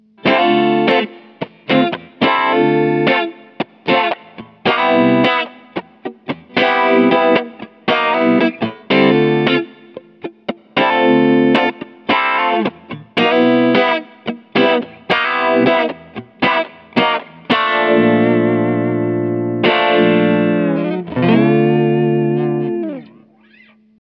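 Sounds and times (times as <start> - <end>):
bright rhythm guitar with compressor switched on: 0.0 - 24.0.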